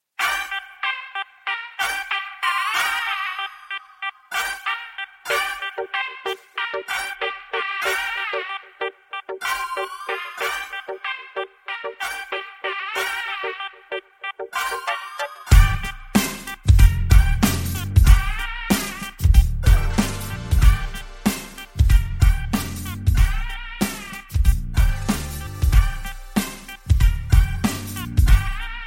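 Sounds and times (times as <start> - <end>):
beer bottle instrumental music: 0.2 - 28.8.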